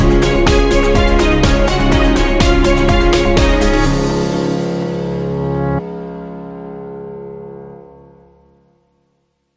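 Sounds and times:
motivational beat: 0.0s - 5.7s.

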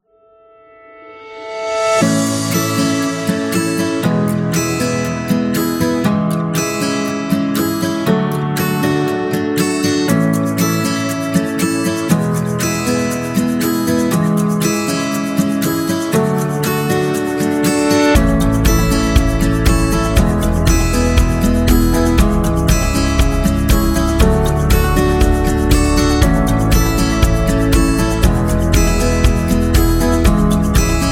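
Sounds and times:
dreamy love story music: 1.3s - 31.1s.

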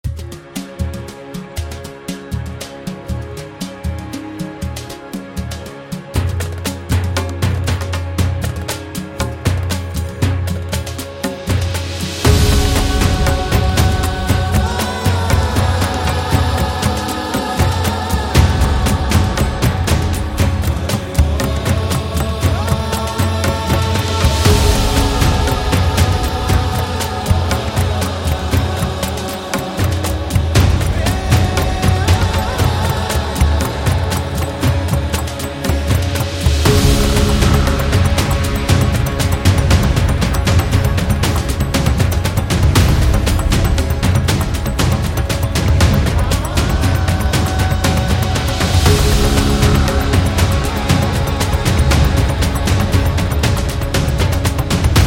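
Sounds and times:
oriental documentary music: 0.0s - 55.0s.

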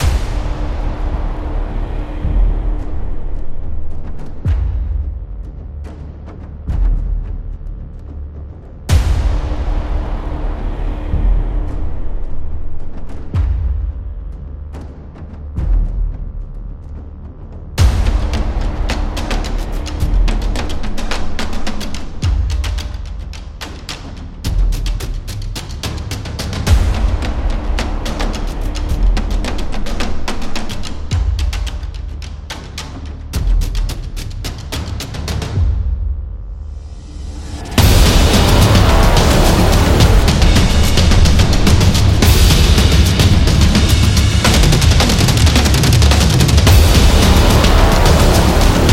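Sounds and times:
tension trailer music: 0.0s - 48.9s.

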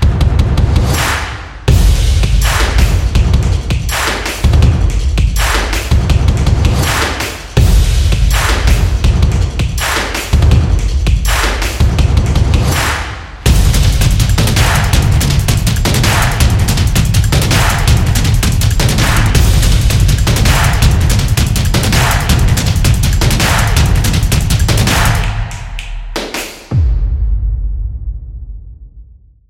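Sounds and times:
percussion drum beat: 0.0s - 28.1s.

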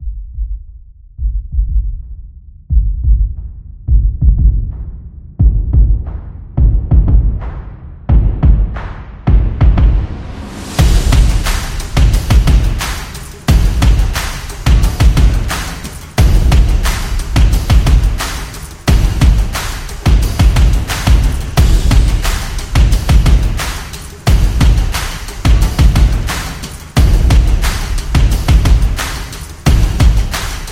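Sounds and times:
epic stomping percussion: 0.2s - 30.6s.

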